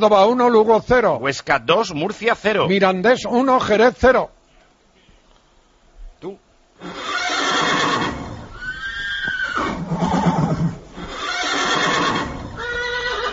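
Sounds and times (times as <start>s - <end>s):
speech: 0.0s - 4.4s, 6.2s - 7.2s
horse neighing: 6.8s - 13.3s.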